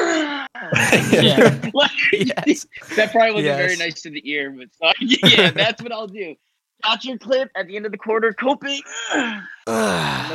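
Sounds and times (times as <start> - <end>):
speech: 0.6 - 10.3
laughter: 0.8 - 3.8, 5.1 - 5.8
voice imitating a gasping exhale after holding breath: 9.1 - 10.3.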